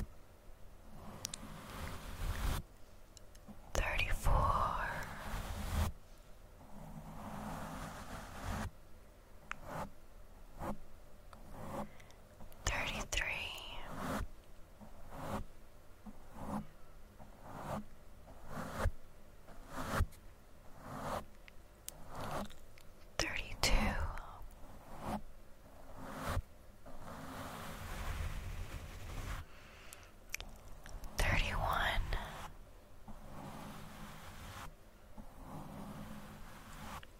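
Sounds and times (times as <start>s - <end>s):
brushing and rubbing against a microphone: 0.9s - 2.7s, 3.8s - 6.1s, 6.7s - 8.7s, 9.6s - 10.0s, 10.6s - 10.8s, 11.4s - 12.0s, 12.8s - 15.5s, 16.1s - 21.4s, 22.0s - 22.7s, 23.4s - 29.6s, 31.1s - 37.1s.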